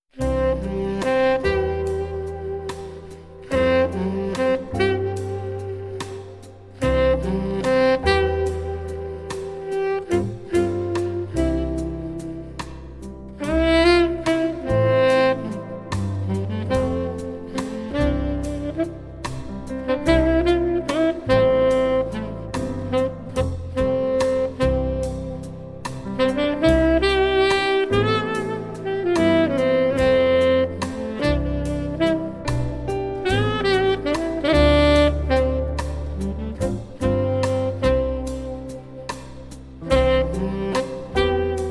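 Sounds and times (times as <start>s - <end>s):
saxophone playing: 0.1s - 41.7s.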